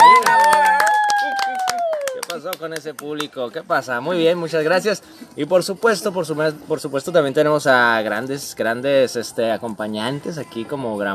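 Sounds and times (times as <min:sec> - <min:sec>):
audience clapping in rhythm: 0:00.0 - 0:03.3
speech: 0:02.4 - 0:11.1.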